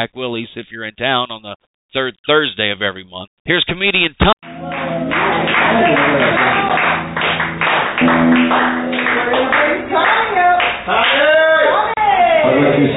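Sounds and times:
speech: 0.0s - 4.5s, 5.6s - 7.4s
audience clapping: 4.4s - 12.0s.

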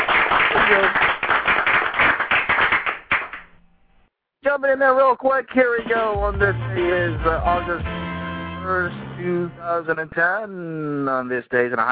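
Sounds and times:
hands clapping: 0.0s - 3.6s
speech: 4.6s - 8.0s, 8.6s - 11.9s.

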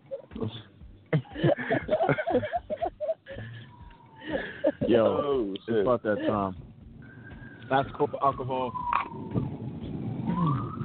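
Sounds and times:
traffic rumble: 0.0s - 10.8s
laughter: 1.1s - 6.5s
sirens passing outside: 3.6s - 4.9s, 7.0s - 10.8s
speech: 5.0s - 6.7s, 7.7s - 8.8s.

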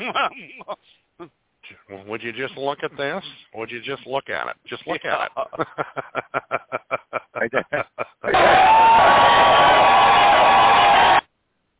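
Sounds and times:
laughter: 0.0s - 0.8s, 4.9s - 8.7s
speech: 0.0s - 1.0s, 2.1s - 6.3s
audience applause and cheering: 8.3s - 11.2s.

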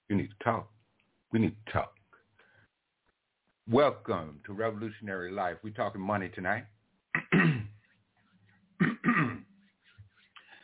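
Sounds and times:
speech: 0.1s - 2.0s, 3.7s - 6.8s
throat clearing: 7.1s - 7.8s, 8.8s - 9.5s.

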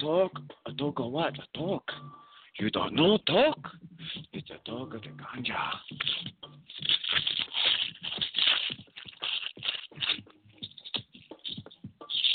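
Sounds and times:
speech: 0.0s - 7.0s
paper being crushed up: 5.8s - 12.3s.

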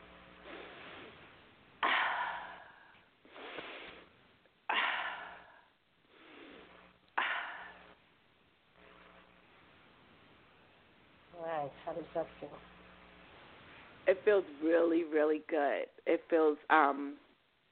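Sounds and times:
slow deep breathing during a guided meditation: 0.4s - 4.1s, 4.7s - 8.0s
speech: 11.6s - 12.7s, 14.1s - 17.2s.

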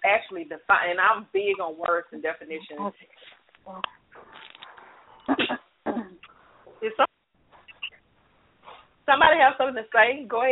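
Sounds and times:
speech: 0.1s - 4.4s, 5.3s - 5.6s, 6.8s - 7.2s, 9.1s - 10.4s
person clearing throat in a group listening to a talk: 5.3s - 6.2s.

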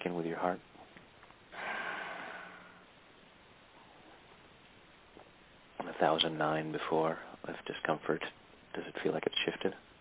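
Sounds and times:
speech: 0.4s - 0.7s, 6.0s - 9.9s
deep breath drawn in: 1.5s - 2.9s.

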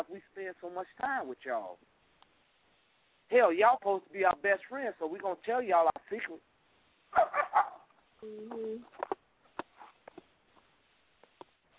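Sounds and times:
speech: 0.2s - 2.0s, 3.3s - 6.5s, 7.1s - 9.1s
dogs barking: 7.1s - 7.9s.

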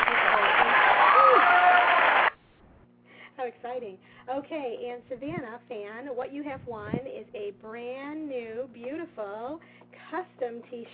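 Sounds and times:
crowd applause: 0.0s - 2.4s
whoops and cheers: 0.4s - 2.3s
speech: 4.5s - 10.9s.

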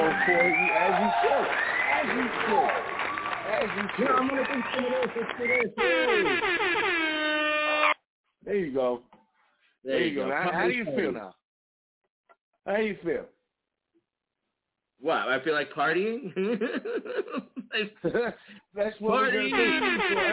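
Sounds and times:
clapping: 0.0s - 5.8s
canned roaring cheering crowd: 0.0s - 6.5s, 19.1s - 20.3s
laughter: 3.5s - 6.4s, 16.3s - 20.3s
speech: 4.0s - 6.9s, 8.4s - 9.1s, 9.8s - 11.4s, 12.6s - 13.4s, 15.0s - 20.3s
blaring air horn blasts with bending pitch: 5.7s - 8.0s, 19.2s - 20.3s.

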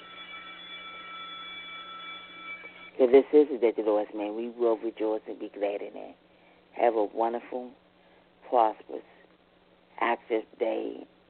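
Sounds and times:
school bells ringing: 0.0s - 3.4s
speech: 3.0s - 7.8s, 8.5s - 9.1s, 10.0s - 11.2s.

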